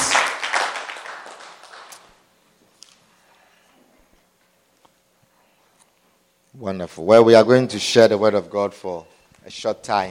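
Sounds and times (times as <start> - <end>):
audience clapping: 0.0 - 2.2
speech: 6.6 - 10.0.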